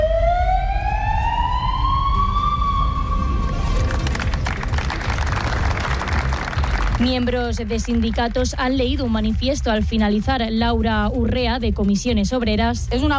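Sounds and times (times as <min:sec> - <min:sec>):
police patrol car siren wailing: 0:00.0 - 0:05.8
outdoor noise: 0:00.0 - 0:13.1
speech: 0:07.0 - 0:13.1.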